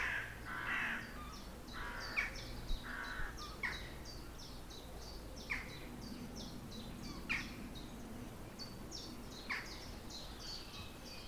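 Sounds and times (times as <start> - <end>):
crows cawing: 0.0 - 1.1, 1.8 - 3.8
low constant rumble: 0.0 - 11.2
small birds chirping: 0.0 - 11.2.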